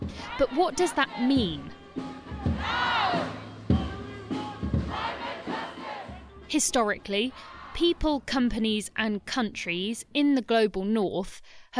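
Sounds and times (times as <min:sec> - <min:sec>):
protest crowd chanting a slogan: 0:00.1 - 0:08.0
speech: 0:00.4 - 0:02.1, 0:06.5 - 0:11.7.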